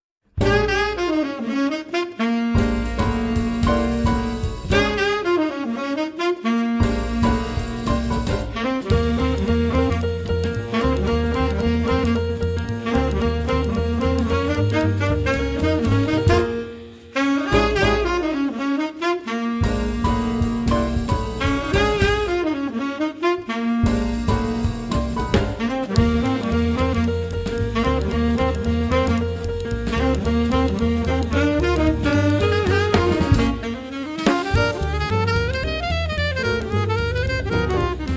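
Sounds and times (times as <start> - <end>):
jazz blues line: 0.3 - 38.1.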